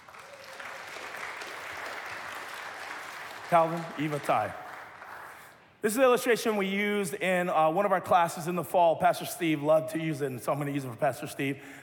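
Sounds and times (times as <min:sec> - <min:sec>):
audience applause: 0:00.0 - 0:05.5
speech: 0:03.5 - 0:04.6, 0:05.8 - 0:11.8.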